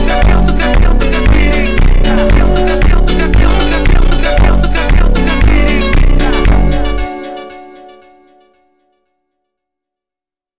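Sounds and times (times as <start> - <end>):
slowed funk music: 0.0 - 8.0.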